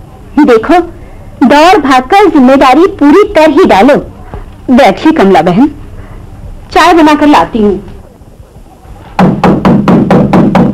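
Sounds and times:
speech: 0.4s - 4.1s, 4.7s - 5.8s, 6.7s - 7.9s
banging on a door: 9.2s - 10.7s.

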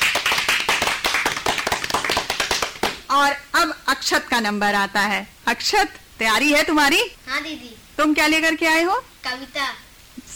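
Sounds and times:
applause for a child's poem: 0.0s - 3.1s
speech: 3.1s - 9.8s.

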